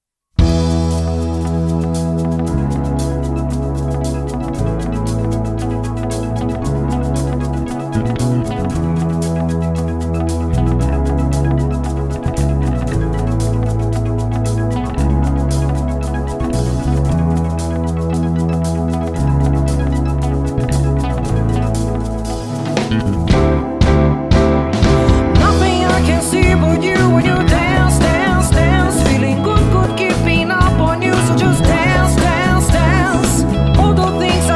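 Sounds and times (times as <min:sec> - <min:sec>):
pop music medley: 0:00.4 - 0:34.5.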